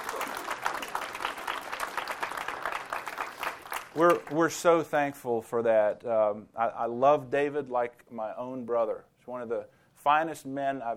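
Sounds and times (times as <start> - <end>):
audience applauding at a ministry gathering: 0.0 - 4.5
speech: 4.0 - 10.9.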